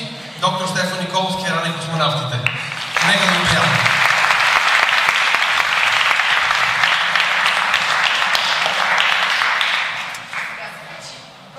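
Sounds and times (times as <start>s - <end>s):
speech: 0.4s - 2.1s
audience applause at a physics-and-music lecture: 2.4s - 10.7s.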